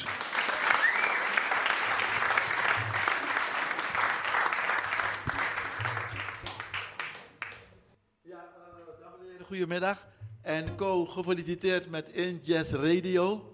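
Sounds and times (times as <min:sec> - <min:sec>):
audience applause: 0:00.0 - 0:07.6
speech: 0:09.5 - 0:13.5.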